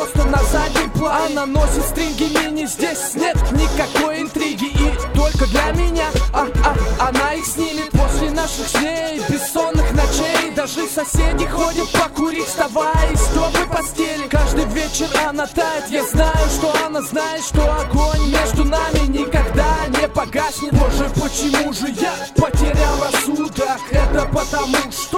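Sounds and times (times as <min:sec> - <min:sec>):
micro street beat: 0:00.0 - 0:25.1.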